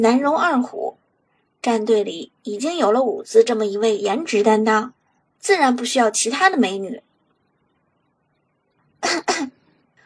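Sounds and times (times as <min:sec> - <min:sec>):
speech: 0:00.0 - 0:01.0, 0:01.6 - 0:07.1, 0:09.0 - 0:09.6
woman clearing her throat: 0:09.0 - 0:09.6.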